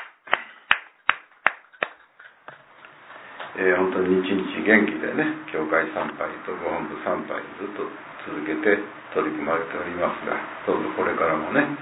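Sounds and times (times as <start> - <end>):
audience clapping: 0.0 - 2.4
speech: 3.6 - 11.8.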